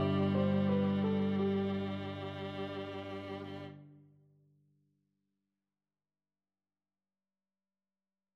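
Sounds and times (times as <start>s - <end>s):
viola trio: 0.0s - 3.8s.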